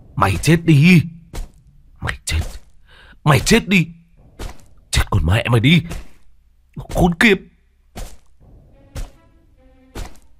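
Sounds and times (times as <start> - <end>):
speech: 0.2 - 1.1, 3.2 - 4.0, 5.1 - 6.0, 6.8 - 8.1
stone smashed down onto a body: 1.3 - 1.7, 4.2 - 4.9, 5.8 - 7.2, 7.9 - 9.3, 9.9 - 10.3.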